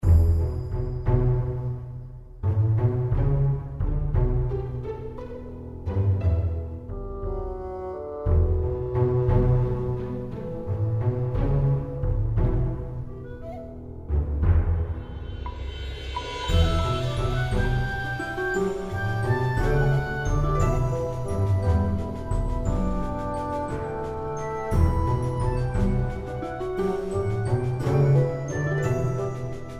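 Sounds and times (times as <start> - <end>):
pre-battle background music: 0.0 - 29.7.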